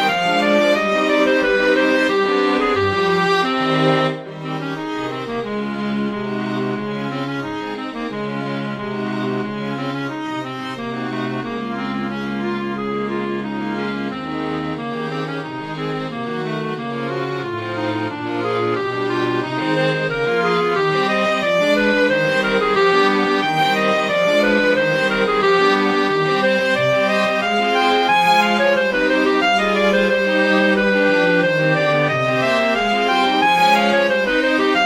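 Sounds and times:
clarinet: 0:00.0 - 0:34.8
strings: 0:00.0 - 0:34.8.

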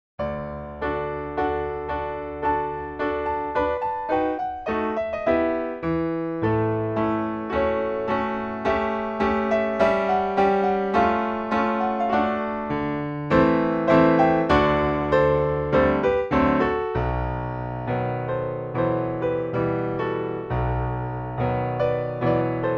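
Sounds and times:
merry dance piano piece: 0:00.2 - 0:22.7.

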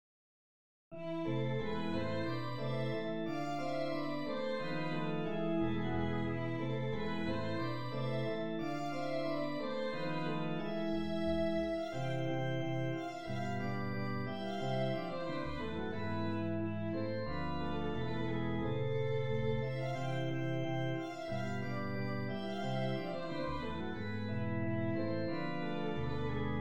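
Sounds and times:
minor-key rigaudon: 0:01.0 - 0:26.6.

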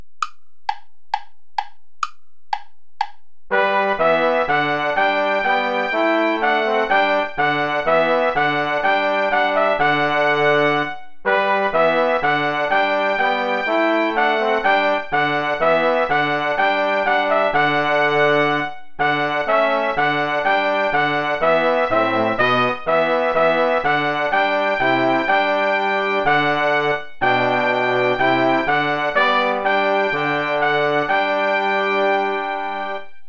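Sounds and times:
play-along backing music without trumpet: 0:00.0 - 0:33.2.

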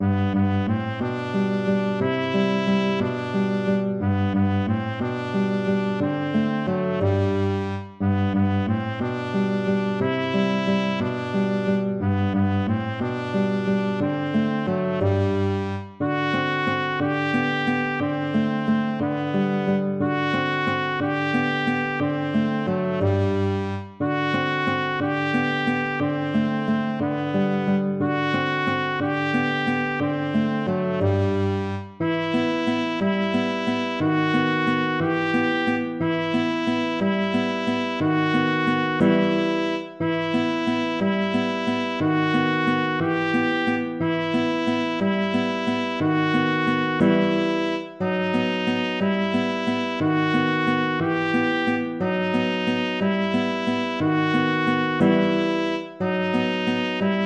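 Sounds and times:
waltz music: 0:00.0 - 0:57.2.

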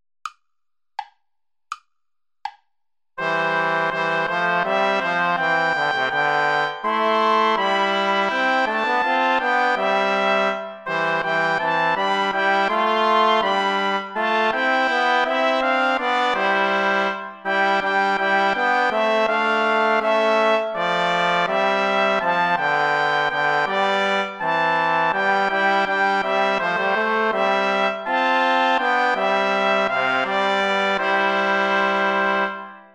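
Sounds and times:
play-along backing music without trombone: 0:03.2 - 0:32.8.

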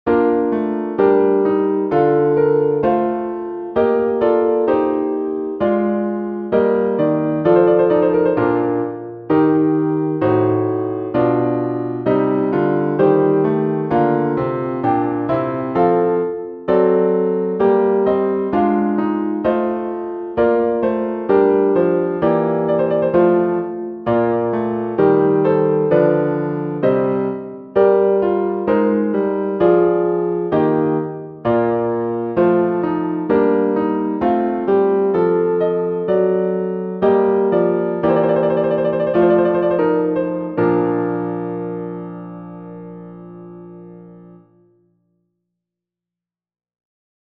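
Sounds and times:
chorale for piano: 0:00.0 - 0:44.6.

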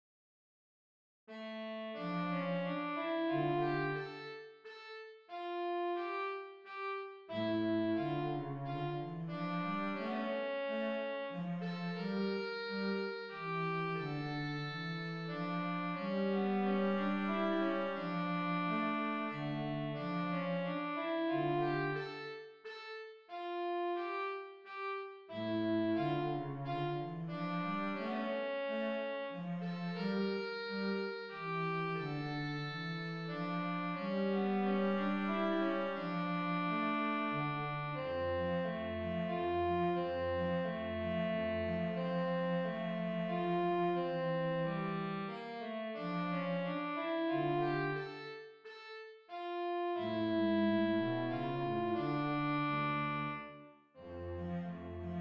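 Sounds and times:
minor-key minuet: 0:01.3 - 0:55.1.

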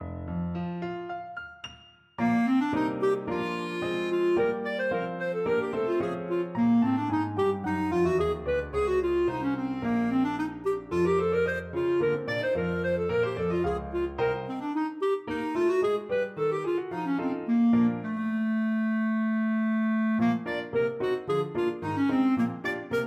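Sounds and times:
clarinet: 0:02.2 - 0:23.0.

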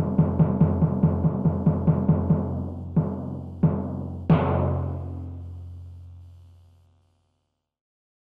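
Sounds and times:
small timpani duo: 0:00.0 - 0:05.6.

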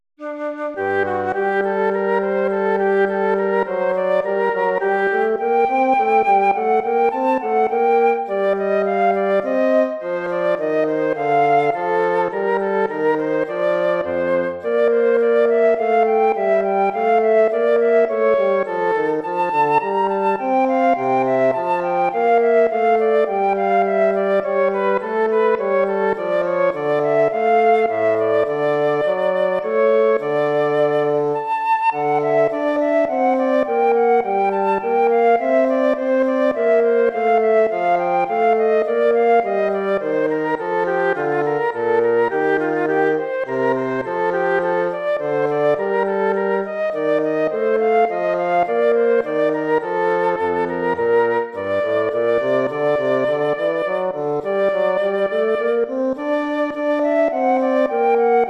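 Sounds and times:
baroque dance piece: 0:00.2 - 0:58.4.

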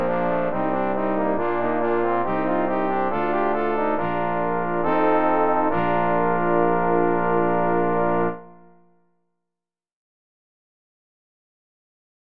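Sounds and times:
trombone quartet playing: 0:00.0 - 0:08.6.

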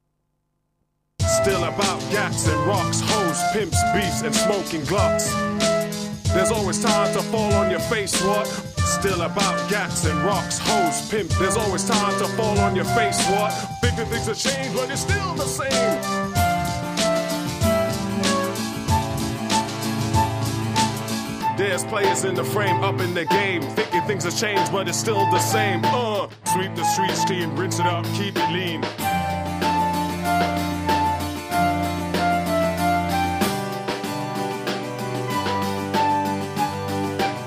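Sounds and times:
classical pop music: 0:01.2 - 0:37.4.

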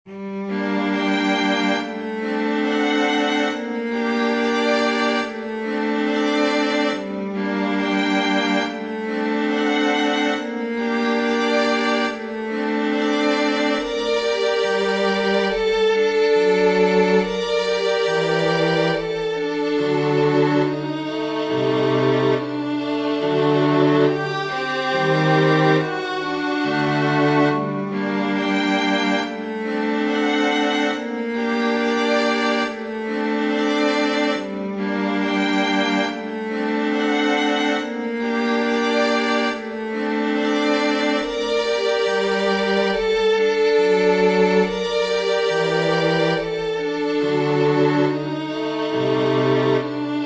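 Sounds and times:
string quartet playing a chorale: 0:00.0 - 0:50.2.

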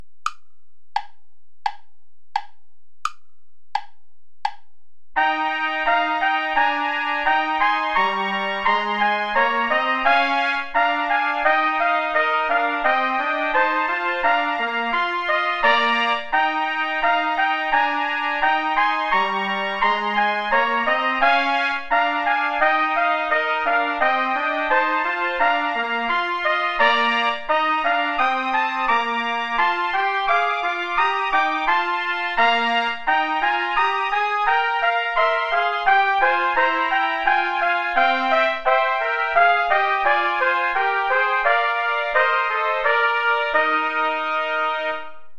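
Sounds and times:
play-along backing music without trumpet: 0:05.2 - 0:45.2.

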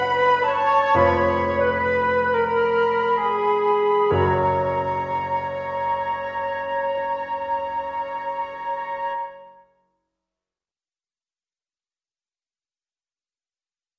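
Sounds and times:
sonata: 0:00.0 - 0:09.7.

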